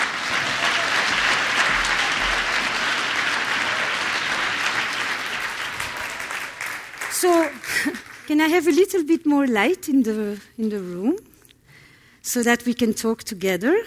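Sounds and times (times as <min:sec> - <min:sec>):
audience applause welcoming a speaker to the stage: 0:00.0 - 0:08.3
speech: 0:08.3 - 0:11.3, 0:12.2 - 0:13.8.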